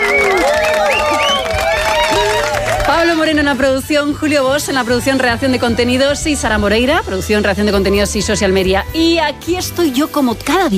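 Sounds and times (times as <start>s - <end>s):
applause: 0.0s - 3.4s
speech: 3.2s - 10.7s.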